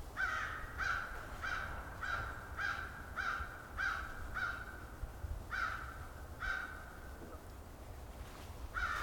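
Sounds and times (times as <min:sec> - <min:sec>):
American crow cawing: 0:00.2 - 0:04.9, 0:05.5 - 0:07.0, 0:08.7 - 0:09.0.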